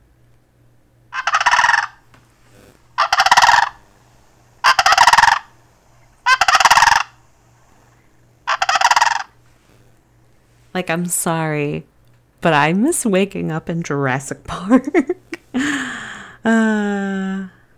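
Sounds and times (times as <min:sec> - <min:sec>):
sandhill crane call: 0:01.2 - 0:02.0, 0:03.0 - 0:03.9, 0:04.6 - 0:05.6, 0:06.2 - 0:07.2, 0:08.5 - 0:09.3
speech: 0:10.8 - 0:15.8, 0:16.4 - 0:17.5.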